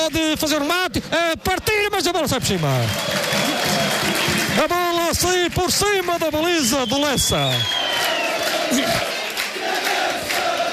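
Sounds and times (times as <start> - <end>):
speech: 0.0 - 9.9
football crowd cheering on the Viana do Castelo team: 1.4 - 5.2, 6.9 - 10.7.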